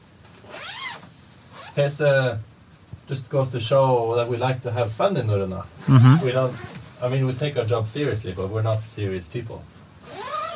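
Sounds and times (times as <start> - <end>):
tent zipper being opened: 0.5 - 1.0, 10.1 - 10.5
speech: 1.8 - 2.5, 3.1 - 9.8.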